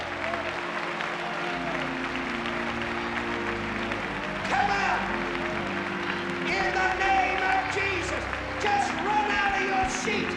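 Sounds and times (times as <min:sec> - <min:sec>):
audience clapping: 0:00.0 - 0:10.3
speech: 0:08.6 - 0:10.3.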